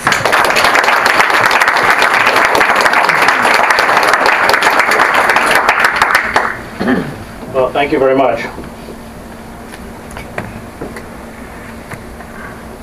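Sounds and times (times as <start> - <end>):
audience applause welcoming the speakers at an evening talk series: 0.0 - 6.6
speech: 7.8 - 8.6.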